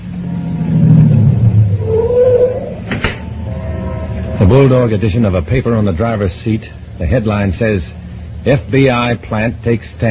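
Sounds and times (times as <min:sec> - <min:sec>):
taxi engine revving: 0:00.0 - 0:05.4
speech: 0:04.4 - 0:10.0.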